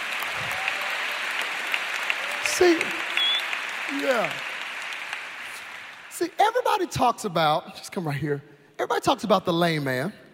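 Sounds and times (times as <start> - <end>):
audience applause: 0.0 - 6.9
speech: 2.6 - 3.0, 3.9 - 4.5, 6.2 - 10.2.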